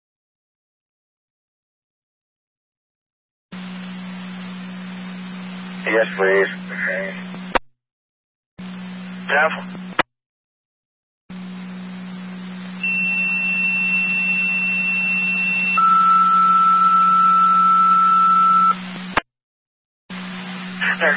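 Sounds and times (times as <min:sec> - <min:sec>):
speech: 0:05.8 - 0:07.3, 0:09.3 - 0:09.8
fire radio dispatch alert tones: 0:12.8 - 0:18.8.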